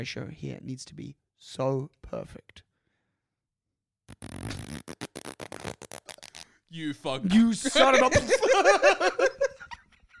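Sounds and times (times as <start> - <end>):
speech: 0.0 - 2.7, 4.1 - 5.1, 6.7 - 9.4
long loud fart: 4.1 - 6.5
laughter: 7.3 - 10.1.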